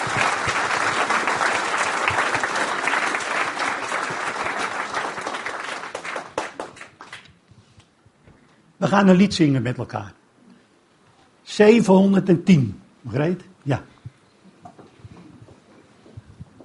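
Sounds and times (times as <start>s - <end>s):
audience clapping: 0.0s - 7.4s
speech: 8.8s - 10.2s, 11.6s - 13.9s.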